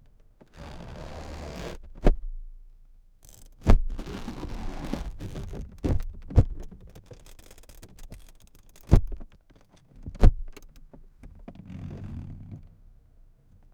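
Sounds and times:
hands rubbing leather car seat: 0:03.6 - 0:06.6.

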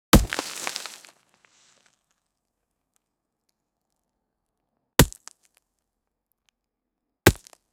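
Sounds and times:
hoe hitting soil in farming: 0:00.1 - 0:01.7, 0:07.3 - 0:07.6.

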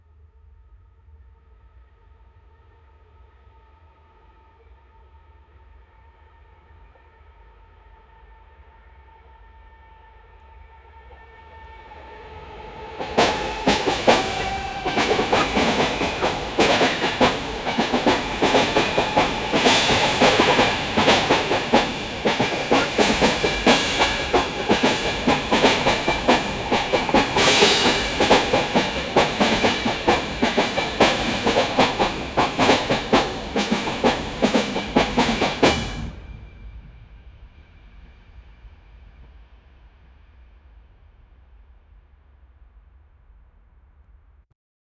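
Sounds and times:
UK train ride: 0:12.0 - 0:36.8.

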